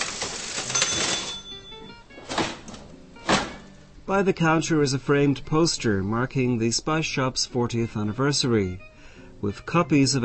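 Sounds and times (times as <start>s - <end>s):
old mechanical cash register being operated: 0.0s - 3.7s
speech: 4.1s - 10.2s.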